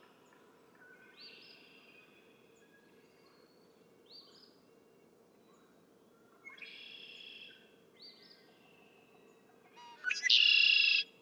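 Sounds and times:
Red-winged Blackbird: 9.8s - 11.1s.

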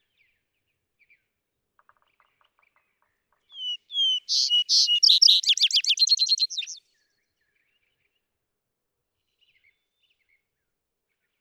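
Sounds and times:
vesper sparrow singing: 3.5s - 6.8s.

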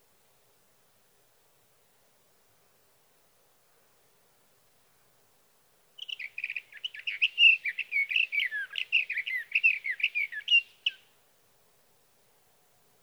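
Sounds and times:
Sage thrasher singing a warbling song: 6.0s - 11.0s.

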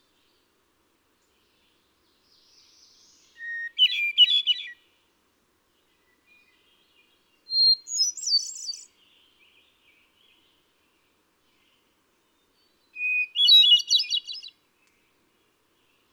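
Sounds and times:
hermit thrush singing: 1.2s - 4.9s, 5.8s - 16.1s.

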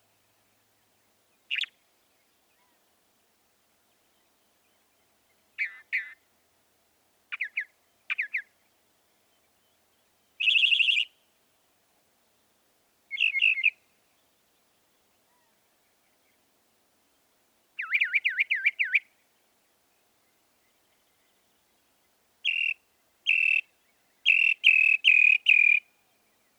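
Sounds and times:
northern mockingbird singing: 10.4s - 11.1s, 13.1s - 13.8s, 17.8s - 19.0s, 22.4s - 25.8s.

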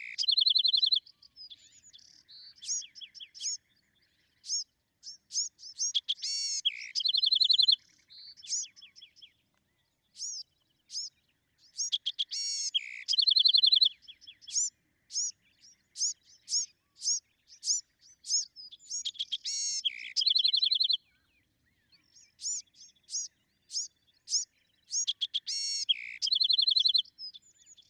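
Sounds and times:
Bewick's wren singing: 0.0s - 27.8s.

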